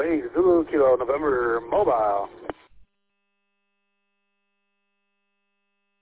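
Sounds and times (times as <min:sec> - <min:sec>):
speech: 0:00.0 - 0:02.4
radio transmitter keyed up without speech: 0:00.0 - 0:02.6.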